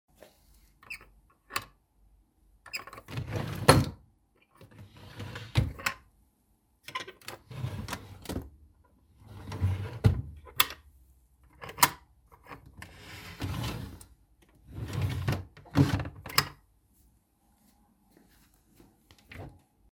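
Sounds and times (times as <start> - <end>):
small chest of drawers with bronze handles and hinges: 2.7 - 6.0, 6.9 - 8.5, 9.2 - 10.8, 11.6 - 16.6.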